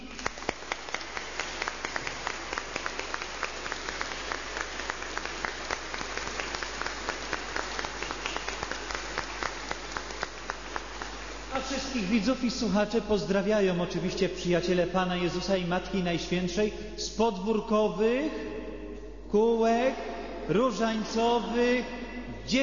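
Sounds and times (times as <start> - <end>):
warm audience applause: 0.0 - 12.0
speech: 12.0 - 18.5, 19.3 - 22.6.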